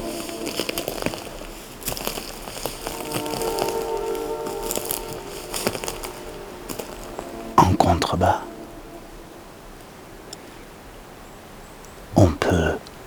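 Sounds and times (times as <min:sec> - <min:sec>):
footsteps crunching over twigs and dry forest litter: 0:00.0 - 0:09.4
steady watery hiss: 0:00.0 - 0:13.0.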